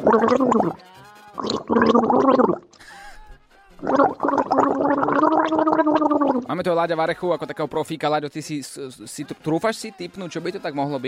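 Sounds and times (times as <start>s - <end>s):
gargling with water: 0.0s - 0.8s, 1.4s - 2.7s, 3.8s - 6.6s
speech: 0.1s - 2.5s, 6.5s - 11.0s.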